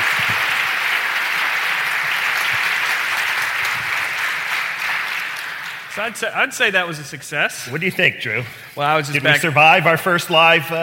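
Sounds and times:
live studio audience applauding at an Educators Day event: 0:00.0 - 0:06.3
speech: 0:06.0 - 0:10.8.

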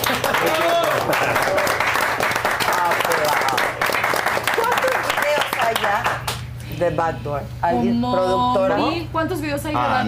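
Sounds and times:
applause: 0:00.0 - 0:06.4
speech: 0:06.8 - 0:10.0.

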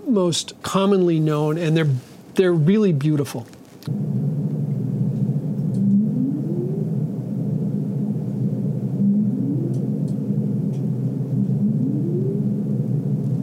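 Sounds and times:
speech: 0:00.1 - 0:04.1
dense underwater rumble: 0:03.9 - 0:13.4
humpback whale song moaning upsweeps: 0:05.8 - 0:13.0.

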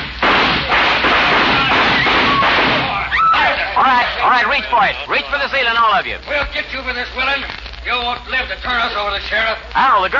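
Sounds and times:
gunshots fired into the air: 0:00.0 - 0:03.1
speech: 0:04.0 - 0:10.1.

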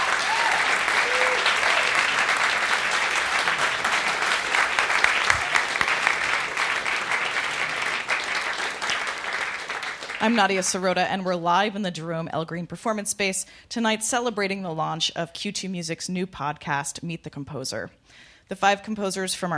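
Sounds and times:
concert audience applause: 0:00.0 - 0:10.7
speech: 0:10.3 - 0:19.5.

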